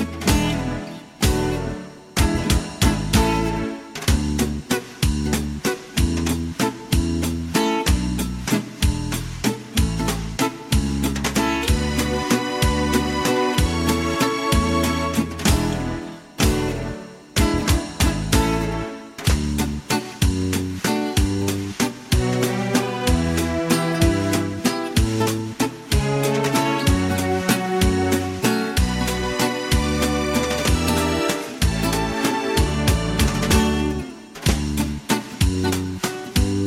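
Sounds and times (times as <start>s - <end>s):
instrumental Viennese waltz karaoke backing track: 0.0s - 36.6s.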